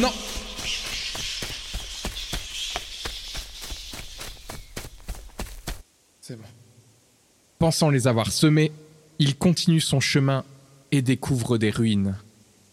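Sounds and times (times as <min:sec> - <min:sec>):
speech: 0:00.0 - 0:00.2, 0:07.6 - 0:12.3
running footsteps through a forest: 0:00.0 - 0:05.9
steady airy hiss: 0:00.0 - 0:12.7.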